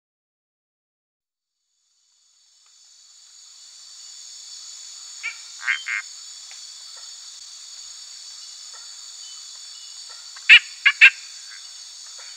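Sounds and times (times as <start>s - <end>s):
Dent's treefrog calls: 4.6s - 7.4s, 8.4s - 12.3s.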